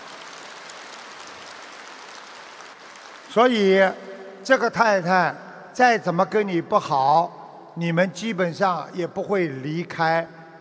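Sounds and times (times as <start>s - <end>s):
crowd applauding: 0.0s - 4.1s
speech: 3.3s - 10.4s.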